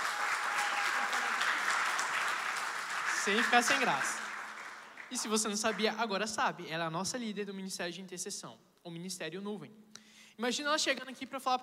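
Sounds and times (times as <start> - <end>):
audience applause: 0.0 - 6.0
speech: 3.2 - 4.2, 5.1 - 11.6.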